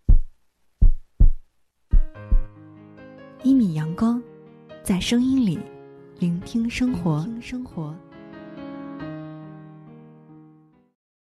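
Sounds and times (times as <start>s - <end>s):
heartbeat thumps: 0.0s - 2.5s
speech: 3.4s - 8.1s.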